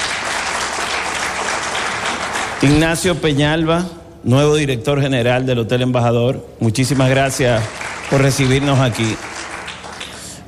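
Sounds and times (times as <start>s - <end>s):
audience applause at a Dominican Republic tourism gathering: 0.0s - 3.0s, 7.4s - 10.4s
speech: 2.6s - 9.3s.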